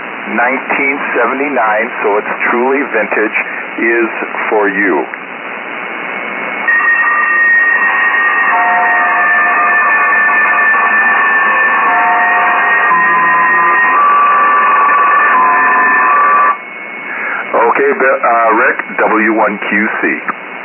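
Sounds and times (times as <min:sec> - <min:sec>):
speech: 0:00.3 - 0:05.2, 0:17.8 - 0:20.4
vintage bell made before 1979 ringing: 0:06.7 - 0:16.7.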